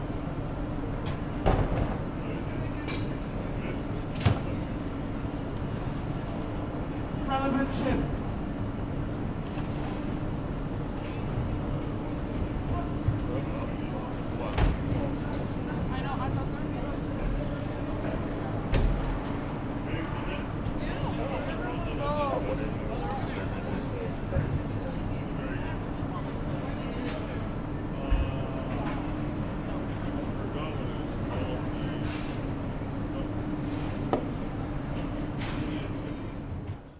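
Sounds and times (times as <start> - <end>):
busy Chilean market interior: 0.0 - 36.9.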